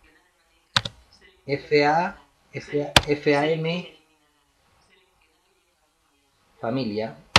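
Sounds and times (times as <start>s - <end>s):
computer keyboard keystrokes with Enter pressed: 0.8s - 1.0s
speech: 1.5s - 4.0s, 6.6s - 7.2s.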